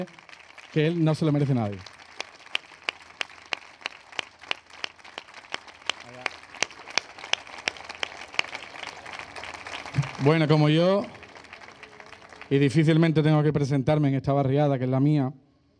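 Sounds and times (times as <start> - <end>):
speech: 0.0 - 1.9, 10.2 - 11.2, 12.5 - 15.4
audience applause: 0.0 - 13.2.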